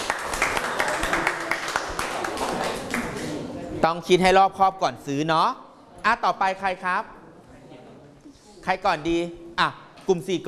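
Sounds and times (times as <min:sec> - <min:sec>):
audience clapping: 0:00.0 - 0:03.5
speech: 0:03.8 - 0:07.2, 0:08.6 - 0:10.4.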